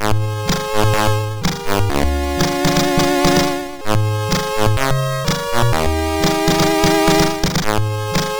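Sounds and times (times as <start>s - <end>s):
chiptune music on MOS6581R2 sound chip: 0.3s - 8.3s.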